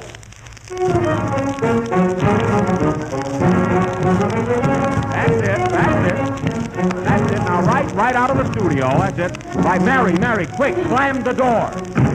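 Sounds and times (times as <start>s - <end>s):
cornet: 0.0s - 12.1s
speech: 0.7s - 2.3s, 8.1s - 12.1s
jew's harp: 0.7s - 12.1s
violin: 0.7s - 12.1s
bass drum: 2.2s - 11.0s, 11.8s - 12.1s.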